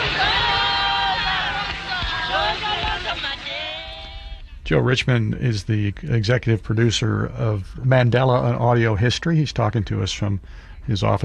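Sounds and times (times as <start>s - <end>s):
large crowd outside court: 0.0s - 4.5s
speech: 4.7s - 11.2s.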